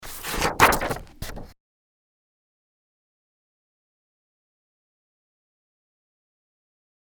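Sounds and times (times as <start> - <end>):
page turning: 0.0 - 1.6.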